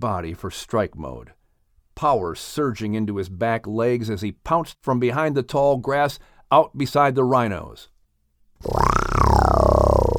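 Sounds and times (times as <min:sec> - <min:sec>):
speech: 0:00.0 - 0:01.4, 0:02.0 - 0:07.9, 0:08.6 - 0:09.3
lion roaring: 0:08.6 - 0:10.1.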